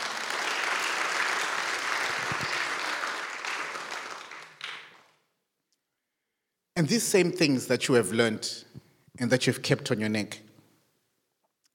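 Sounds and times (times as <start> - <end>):
audience applause: 0.0 - 5.2
speech: 6.8 - 10.4.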